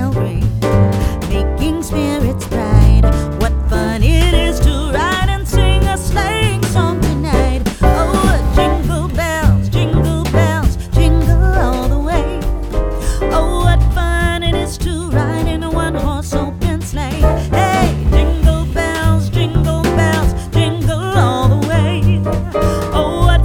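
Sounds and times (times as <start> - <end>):
jazz arrangement of a Christmas song: 0.0 - 23.4.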